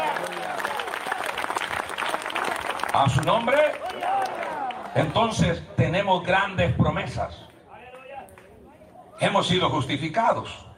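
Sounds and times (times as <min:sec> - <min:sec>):
audience applause: 0:00.0 - 0:05.2
speech: 0:03.0 - 0:04.3, 0:05.0 - 0:07.4, 0:09.2 - 0:10.7.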